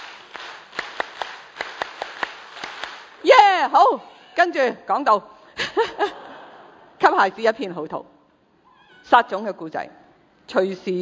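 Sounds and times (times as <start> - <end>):
scattered hand claps from parents at a children's gathering: 0.0 - 3.4
speech: 3.2 - 6.2, 7.0 - 8.1, 9.1 - 11.0.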